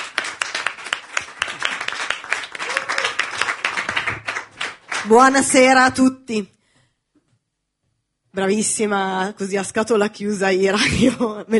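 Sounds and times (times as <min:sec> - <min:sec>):
audience applause: 0:00.0 - 0:05.1
speech: 0:05.0 - 0:06.6, 0:08.4 - 0:11.5.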